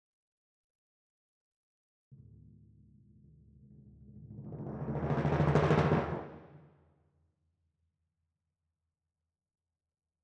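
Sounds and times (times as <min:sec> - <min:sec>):
timpani: 0:03.8 - 0:06.8.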